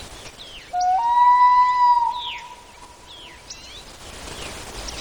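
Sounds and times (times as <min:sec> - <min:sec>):
common loon with punctuated calls: 0:00.7 - 0:03.6.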